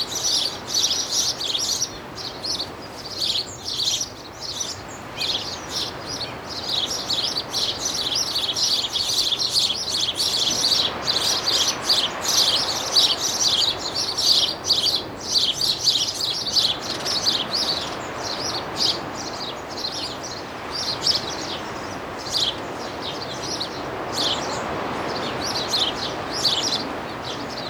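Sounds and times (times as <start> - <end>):
birds twittering in a seaside garden: 0.0 - 27.6.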